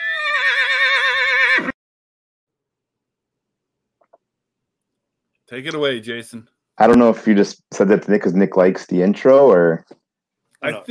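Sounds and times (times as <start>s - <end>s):
horse neighing as a farm animal sound for a segment intro: 0.0s - 1.8s
speech: 5.5s - 10.0s, 10.6s - 10.8s.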